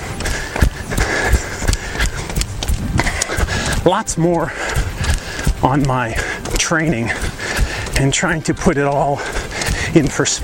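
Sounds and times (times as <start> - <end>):
wind buffeting the microphone while running outdoors: 0.0 - 3.9, 4.5 - 6.4
footfalls of someone running outdoors: 0.0 - 8.4
speech: 3.9 - 4.8, 5.6 - 7.4, 8.0 - 10.4.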